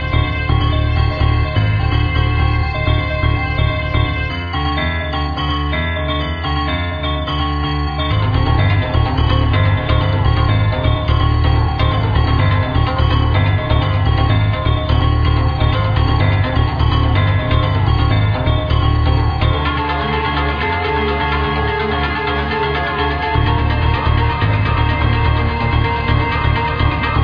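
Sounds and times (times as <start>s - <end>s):
deep piano suspense music: 0.0s - 27.2s.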